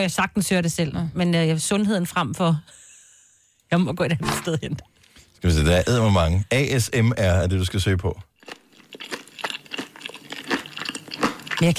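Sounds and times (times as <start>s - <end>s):
speech: 0.0s - 2.8s, 3.7s - 8.6s, 11.6s - 11.7s
crunchy carrot chewing: 8.4s - 11.7s.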